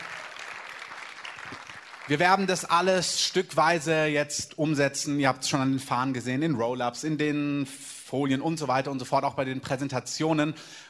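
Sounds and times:
applause: 0.0s - 3.0s
speech: 2.1s - 10.8s.

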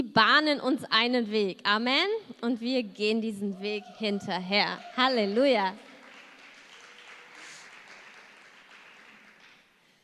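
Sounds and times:
speech: 0.2s - 5.9s
audience applause: 3.8s - 9.7s.

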